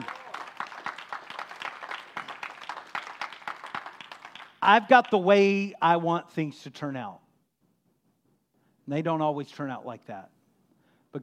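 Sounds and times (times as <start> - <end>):
audience clapping hands: 0.0 - 5.7
speech: 4.6 - 7.2, 8.9 - 10.4.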